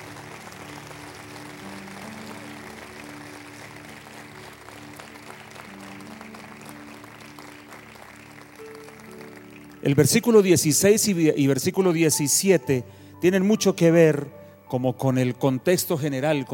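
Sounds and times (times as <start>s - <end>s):
audience applauding: 0.0s - 11.2s
speech: 9.9s - 16.5s.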